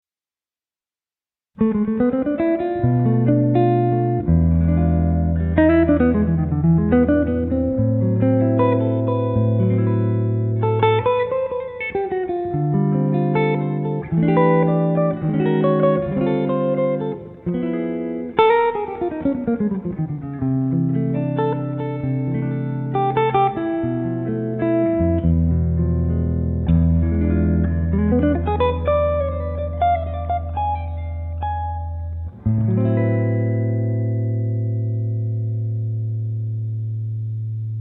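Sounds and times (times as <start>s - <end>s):
jazz improvisation: 1.6s - 37.7s.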